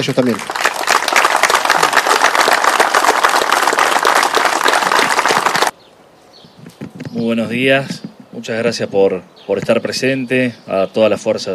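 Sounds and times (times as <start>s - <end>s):
speech: 0.0s - 0.8s, 7.2s - 11.5s
applause: 0.0s - 5.7s.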